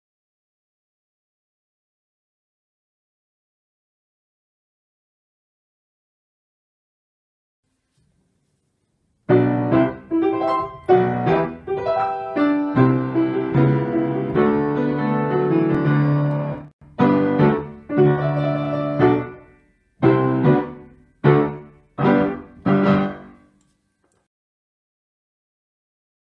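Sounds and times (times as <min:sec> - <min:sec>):
piano intro music: 0:09.3 - 0:23.6.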